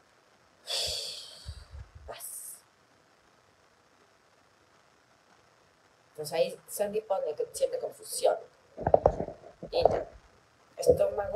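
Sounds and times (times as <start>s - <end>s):
person exhaling during a guided letting-go exercise: 0.7s - 1.8s
speech: 6.2s - 8.9s, 9.7s - 10.1s, 10.9s - 11.3s.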